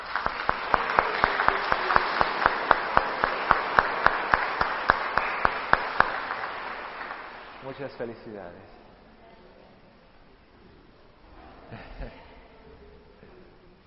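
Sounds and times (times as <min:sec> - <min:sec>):
audience applause: 0:00.0 - 0:08.3
speech: 0:07.8 - 0:08.8.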